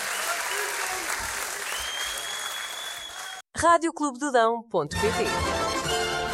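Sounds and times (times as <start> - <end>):
audience applause: 0.0 - 3.4
speech: 3.6 - 6.2.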